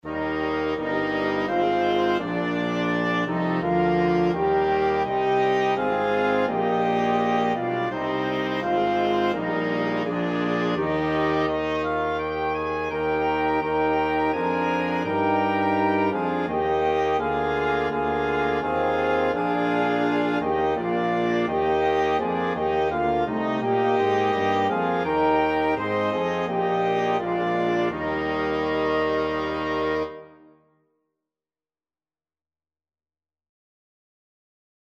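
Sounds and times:
flexible mixed ensemble of 4 players: 0:00.1 - 0:30.4.

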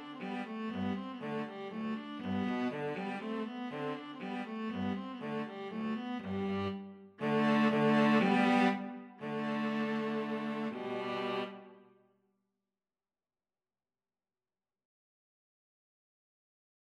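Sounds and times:
viola: 0:00.0 - 0:11.8
cello: 0:00.0 - 0:11.9.

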